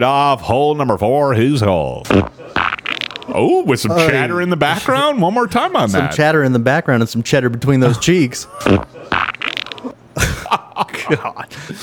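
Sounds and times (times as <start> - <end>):
speech: 0.0 - 2.7, 3.3 - 11.8
laughter: 1.7 - 6.3, 7.6 - 11.8
wet fart: 2.0 - 3.3, 8.6 - 10.0.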